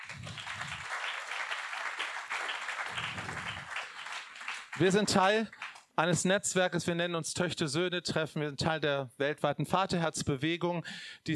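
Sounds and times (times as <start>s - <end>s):
audience applause: 0.0s - 5.9s
speech: 4.8s - 11.3s.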